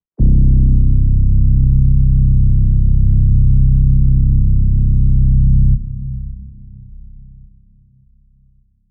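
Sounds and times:
bass: 0:00.0 - 0:08.8.

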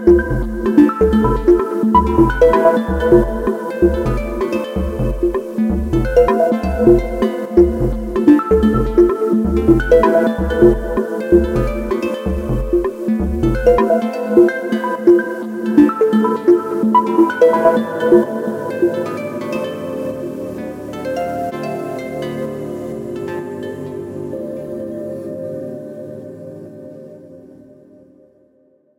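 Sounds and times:
deep techno chords: 0:00.0 - 0:19.1
degraded melodics: 0:00.0 - 0:27.2.

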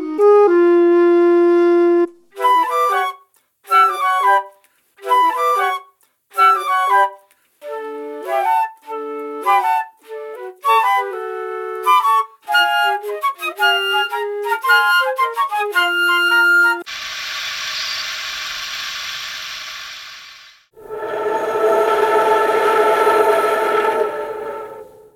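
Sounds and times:
clarinet: 0:00.0 - 0:16.8
flute: 0:00.0 - 0:16.9, 0:20.8 - 0:25.1.

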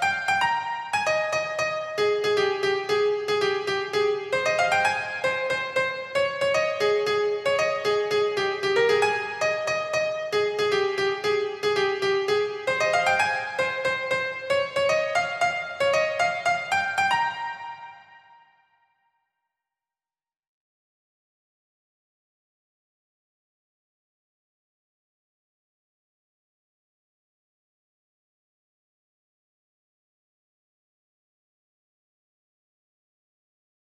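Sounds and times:
solo piano piece in F minor: 0:00.0 - 0:18.0.

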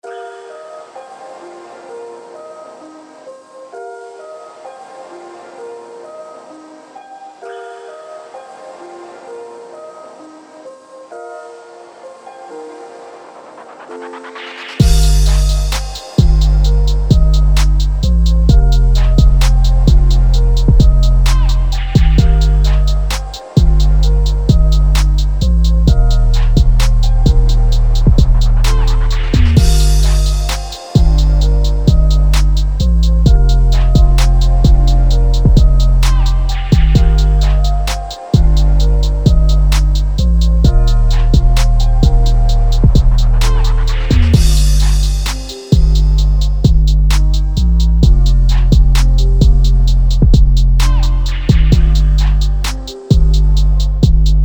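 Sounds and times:
trap beat: 0:14.8 - 0:54.4.

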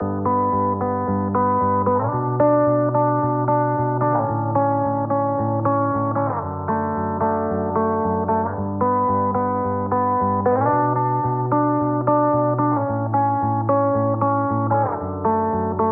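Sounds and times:
guitar: 0:00.0 - 0:15.9.

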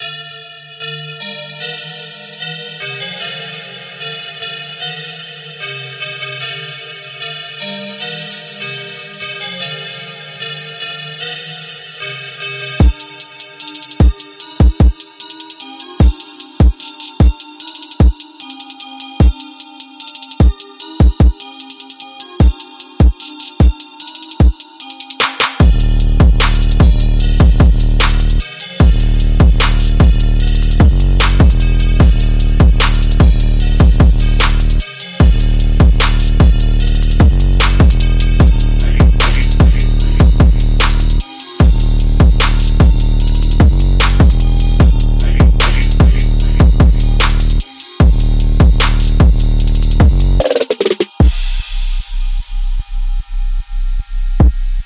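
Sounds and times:
trap beat: 0:12.8 - 0:54.8.

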